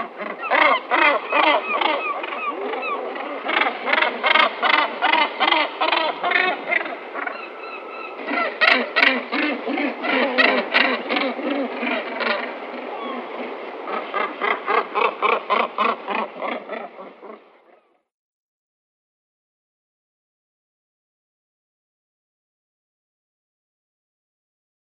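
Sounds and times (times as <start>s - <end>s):
northern gannets uttering rasping pulsed calls: 0.0s - 17.5s.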